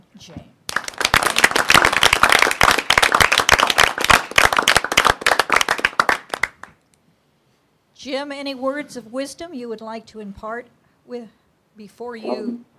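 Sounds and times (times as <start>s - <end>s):
speech: 0.2s - 0.5s, 8.0s - 12.7s
audience applauding: 0.7s - 6.7s.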